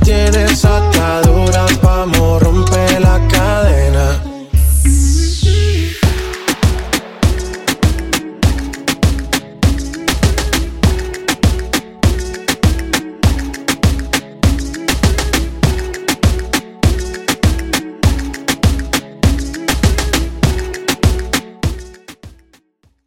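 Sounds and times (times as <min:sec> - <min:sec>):
dirty Top40 moombahton mixshow drum beat: 0:00.0 - 0:23.0.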